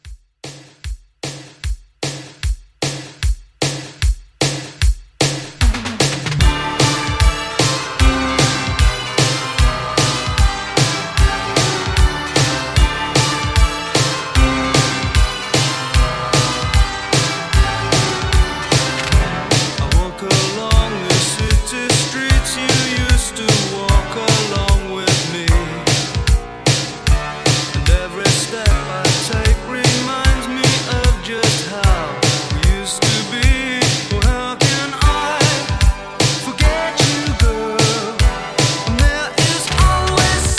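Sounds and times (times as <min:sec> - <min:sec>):
1980s drum machine beat: 0:00.0 - 0:40.5.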